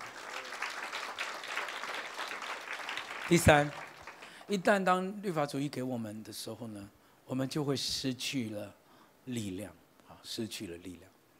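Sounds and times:
audience clapping hands: 0.0 - 4.7
speech: 3.3 - 3.8, 4.5 - 11.1.

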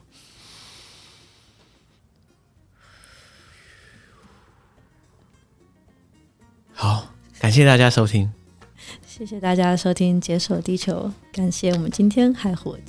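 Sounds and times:
people breathing deeply together: 0.0 - 2.1, 2.8 - 5.2
speech: 7.5 - 8.4, 9.2 - 12.8.

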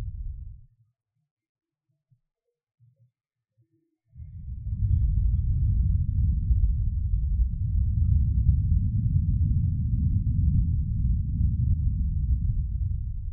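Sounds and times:
low rumble of breath and microphone handling: 0.0 - 0.6, 4.2 - 13.3.

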